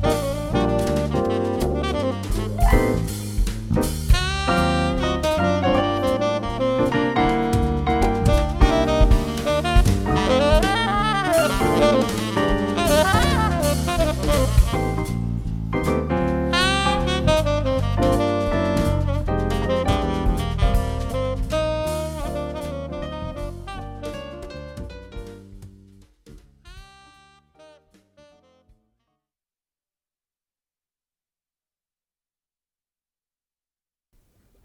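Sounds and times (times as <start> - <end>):
saxophone in cocktail and dinner music: 0.0 - 3.4, 4.1 - 25.4, 26.6 - 28.9
drums in cocktail and dinner music: 0.0 - 27.2
bass in cocktail and dinner music: 0.0 - 28.7.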